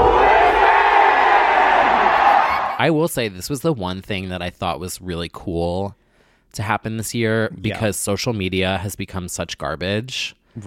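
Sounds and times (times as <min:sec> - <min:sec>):
huge arena crowd screaming a chant: 0:00.0 - 0:02.8
speech: 0:02.8 - 0:10.6.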